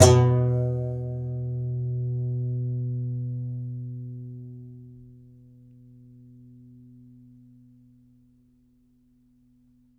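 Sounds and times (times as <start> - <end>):
contrabass balalaika plucked strings: 0.0 - 3.2.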